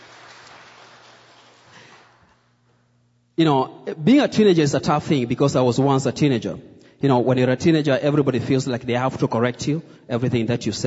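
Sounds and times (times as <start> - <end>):
audience clapping: 0.0 - 2.4
speech: 3.4 - 10.8.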